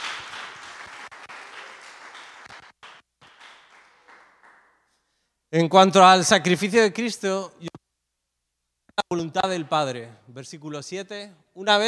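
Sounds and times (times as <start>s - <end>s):
crowd applauding: 0.0s - 4.9s
speech: 5.5s - 7.6s, 9.2s - 11.8s.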